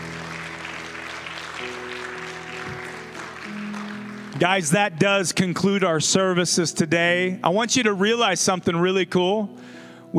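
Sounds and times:
audience clapping hands: 0.0s - 5.4s
speech: 1.6s - 1.9s, 4.4s - 9.8s.

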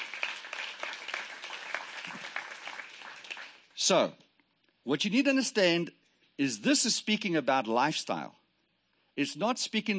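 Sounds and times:
audience hand clapping: 0.0s - 3.9s
speech: 3.8s - 4.2s, 4.8s - 8.4s, 9.2s - 9.9s.

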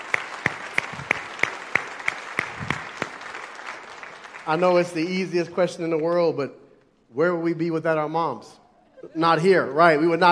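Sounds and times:
audience clapping: 0.0s - 6.4s
speech: 4.5s - 10.3s.

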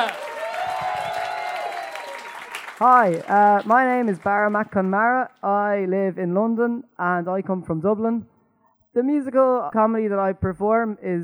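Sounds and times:
audience applause: 0.0s - 4.7s
speech: 2.8s - 8.3s, 9.0s - 11.2s.

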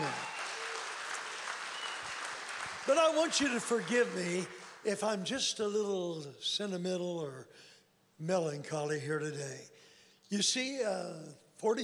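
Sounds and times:
audience applause: 0.0s - 5.0s
speech: 2.8s - 11.8s.

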